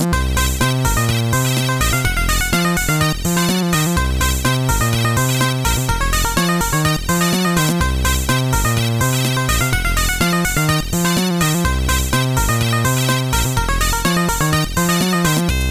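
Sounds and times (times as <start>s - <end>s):
short disco chiptune: 0.1s - 15.6s.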